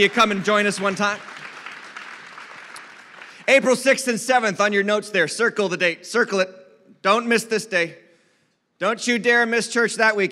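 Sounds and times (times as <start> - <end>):
speech: 0.0 - 1.3, 3.5 - 8.0, 8.8 - 10.3
audience applause, hand clapping: 0.0 - 4.2.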